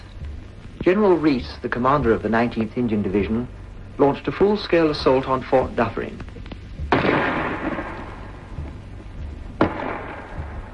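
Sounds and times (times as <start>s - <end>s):
speech: 0.8s - 6.4s
shell bursting on wall: 6.9s - 8.2s, 9.6s - 10.6s
5.5-inch gun firing: 6.9s - 8.6s, 9.6s - 10.7s.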